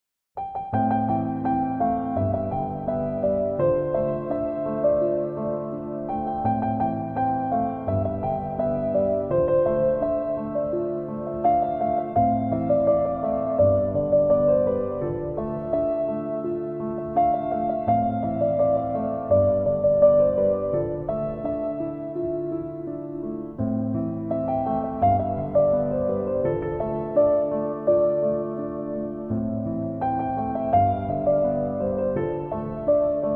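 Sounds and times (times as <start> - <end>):
piano karaoke cover: 0.4 - 33.3.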